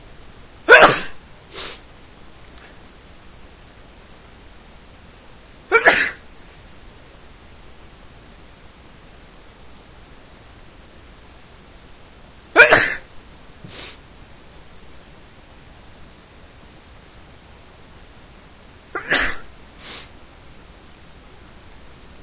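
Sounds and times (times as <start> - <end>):
man sneezing: 0.7 - 1.8, 5.7 - 6.2, 12.6 - 13.1, 19.0 - 20.1.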